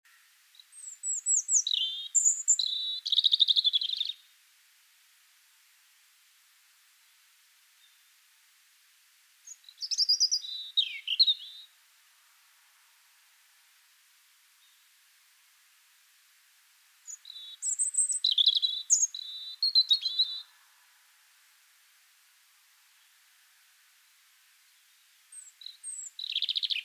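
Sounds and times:
European robin singing: 0.1 - 4.2, 9.5 - 11.8, 17.0 - 20.5, 25.3 - 26.8.

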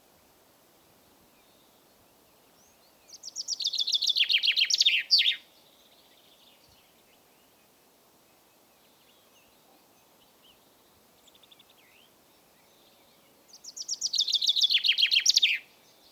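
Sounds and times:
common chaffinch Fringilla coelebs singing: 2.6 - 6.8, 11.3 - 16.0.

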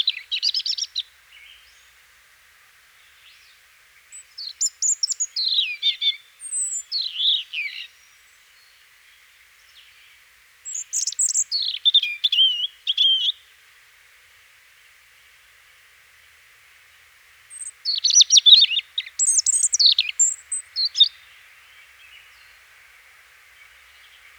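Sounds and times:
European robin singing: 0.0 - 2.0, 3.0 - 8.7, 10.6 - 13.4, 17.5 - 22.7.

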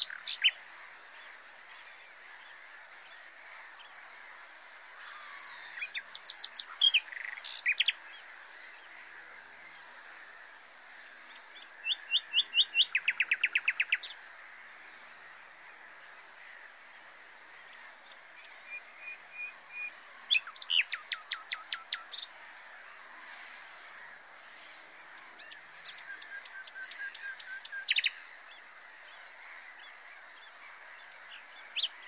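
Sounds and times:
faint birds chirping: 0.0 - 32.0
common nightingale singing: 5.2 - 8.2, 11.6 - 14.2, 18.7 - 22.3, 25.4 - 28.3.

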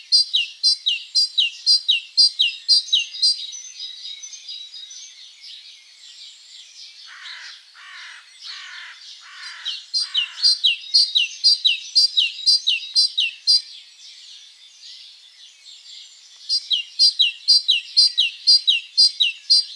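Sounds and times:
bird chorus: 0.0 - 19.7.

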